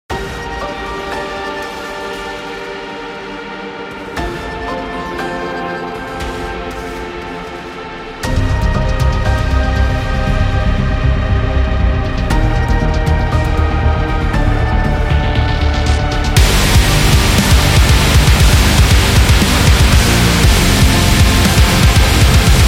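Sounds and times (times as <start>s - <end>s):
gothic metal music: 0.1s - 22.6s.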